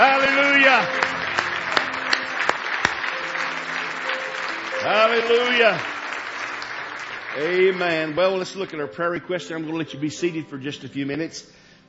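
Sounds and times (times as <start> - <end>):
audience hand clapping: 0.0 - 8.8
speech: 4.8 - 5.9, 7.4 - 11.6.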